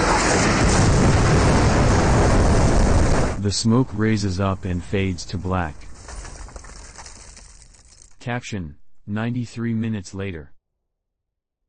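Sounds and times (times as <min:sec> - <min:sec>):
crackling debris: 0:00.0 - 0:03.4, 0:04.7 - 0:08.3
missiles exploding on a building: 0:00.0 - 0:03.4
speech: 0:03.5 - 0:05.9, 0:08.2 - 0:10.5.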